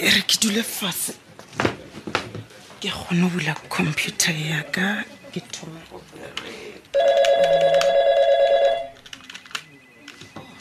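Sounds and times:
speech: 0:00.0 - 0:01.7, 0:02.8 - 0:07.9
office telephone ringing with a warbling trill: 0:06.9 - 0:10.5.

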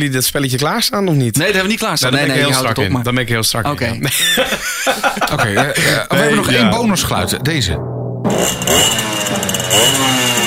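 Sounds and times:
speech: 0:00.0 - 0:10.4
laughter: 0:04.0 - 0:07.1
Kreidler two-stroke moped engine revving: 0:07.8 - 0:10.4.

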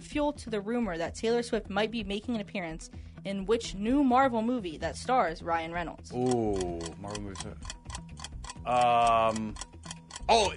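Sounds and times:
speech: 0:00.1 - 0:07.8, 0:08.6 - 0:09.7, 0:10.3 - 0:10.5
quiz timer ticking: 0:05.8 - 0:10.5.

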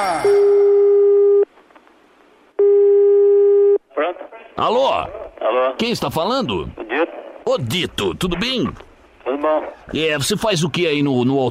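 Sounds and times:
telephone busy tone after caller hangs up: 0:00.6 - 0:01.5, 0:02.6 - 0:03.8
speech: 0:04.6 - 0:06.9, 0:07.5 - 0:11.4.

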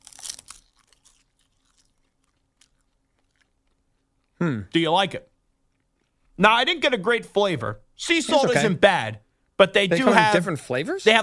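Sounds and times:
crackly chewing: 0:00.0 - 0:04.4, 0:05.6 - 0:06.4
crunchy bite of a snack: 0:00.0 - 0:04.4
speech: 0:04.4 - 0:05.3, 0:06.4 - 0:11.2.

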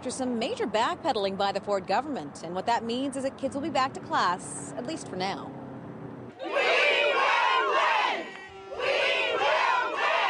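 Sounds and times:
speech: 0:00.0 - 0:05.6
angry support workers chanting on the lawn of the legislature: 0:06.4 - 0:10.2.

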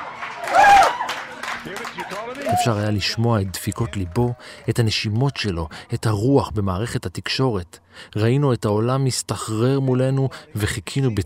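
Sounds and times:
crowd applause: 0:00.0 - 0:04.7
speech: 0:01.6 - 0:11.2.

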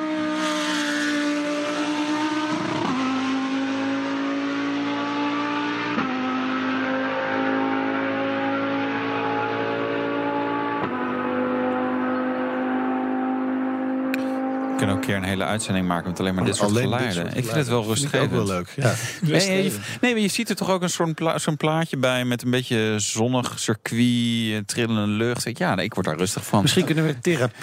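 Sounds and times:
Lamborghini Huracan GT3 race car engine revving through the gears: 0:00.0 - 0:17.9
speech: 0:14.9 - 0:27.6
laughter: 0:16.3 - 0:20.0, 0:26.4 - 0:27.6.

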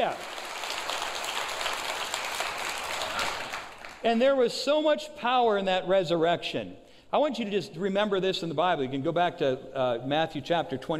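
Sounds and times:
speech: 0:00.0 - 0:00.3, 0:04.0 - 0:10.9
audience applause: 0:00.0 - 0:04.0.

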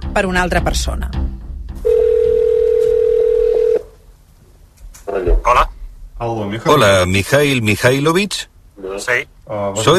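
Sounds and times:
speech: 0:00.2 - 0:01.2, 0:05.2 - 0:09.9
telephone dial tone while placing a call: 0:01.9 - 0:03.8.

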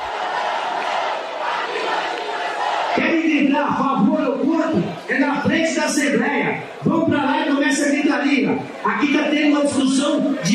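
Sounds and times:
protesters shouting in a tumultuous hearing: 0:00.0 - 0:05.5
speech: 0:03.0 - 0:10.5.

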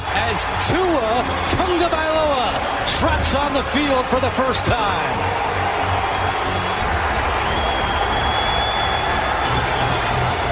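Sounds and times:
large crowd applause and cheering: 0:00.0 - 0:10.5
speech: 0:00.3 - 0:05.8
faint high whistle: 0:07.4 - 0:09.2.

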